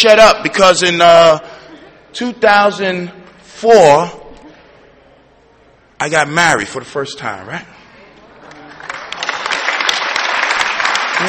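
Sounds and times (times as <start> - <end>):
speech: 0.0 - 4.2, 6.0 - 7.8
audience clapping: 8.4 - 11.2
scattered voices and cheers: 8.5 - 11.2.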